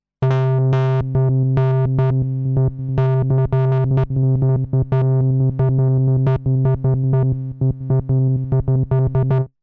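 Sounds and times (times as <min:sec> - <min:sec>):
Moog synthesizer: 0:00.2 - 0:09.5.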